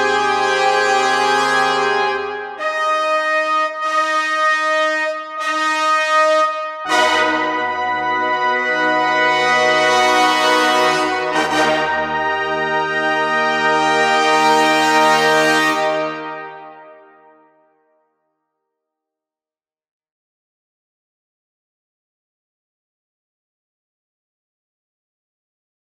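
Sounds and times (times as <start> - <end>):
brass instruments: 0.0 - 17.8.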